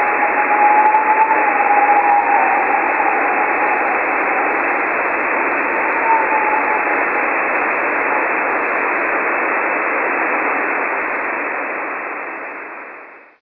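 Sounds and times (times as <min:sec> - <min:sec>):
49.757 video signal bursts from Murmansk on 6 meter radio: 0:00.0 - 0:13.2.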